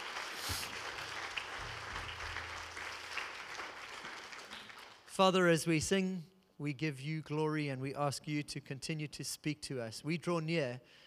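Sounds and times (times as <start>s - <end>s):
audience applause: 0.0s - 5.1s
speech: 5.2s - 11.0s.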